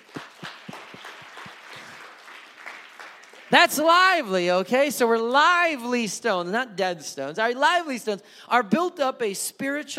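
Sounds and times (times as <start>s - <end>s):
audience clapping and cheering: 0.0s - 3.6s
speech: 3.5s - 9.9s.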